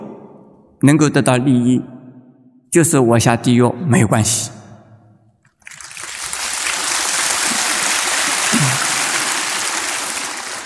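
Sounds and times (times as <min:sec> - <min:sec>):
speech: 0:00.8 - 0:01.9, 0:02.7 - 0:04.6
audience applause: 0:05.6 - 0:10.6.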